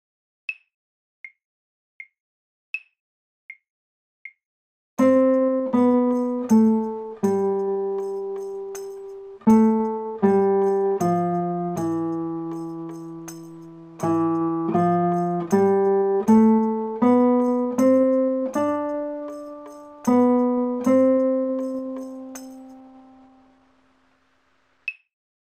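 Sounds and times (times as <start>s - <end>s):
little waltz: 5.1s - 23.3s.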